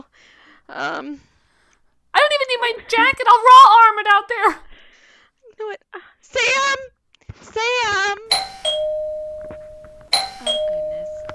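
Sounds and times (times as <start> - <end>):
speech: 0.2 - 1.3, 2.7 - 4.7, 5.6 - 9.0
doorbell chime: 8.3 - 11.3.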